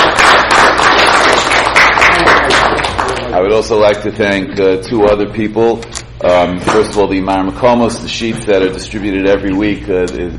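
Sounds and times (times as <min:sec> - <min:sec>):
large crowd applause: 0:00.0 - 0:03.3
speech: 0:03.5 - 0:10.3.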